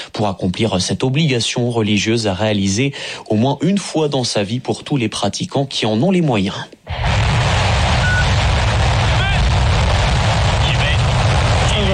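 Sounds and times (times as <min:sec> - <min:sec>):
speech: 0:00.2 - 0:07.2
Chinese rocket lifting off in the Gobi Desert: 0:06.9 - 0:11.9.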